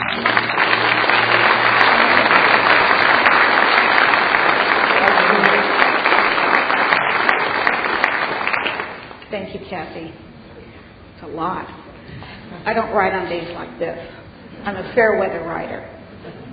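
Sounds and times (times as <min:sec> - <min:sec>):
audience applause welcoming a speaker to the stage: 0:00.0 - 0:09.2
speech: 0:09.7 - 0:10.3, 0:11.2 - 0:11.8, 0:12.6 - 0:16.0.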